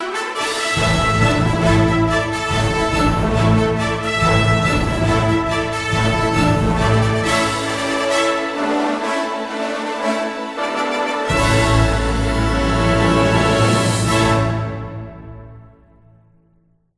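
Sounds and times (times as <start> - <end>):
victory jingle: 0.4 - 9.9, 10.8 - 14.8.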